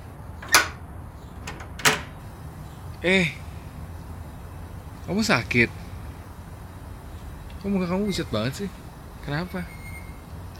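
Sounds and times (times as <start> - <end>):
unlocked door opening: 0.4 - 0.8, 1.4 - 2.2
speech: 3.0 - 3.4, 5.1 - 5.8, 7.6 - 9.8.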